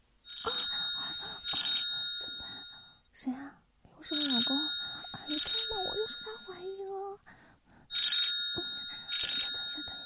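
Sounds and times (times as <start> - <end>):
phone ringing with an incoming call: 0.3 - 3.0, 4.1 - 6.7, 7.9 - 10.0
speech: 3.2 - 5.5.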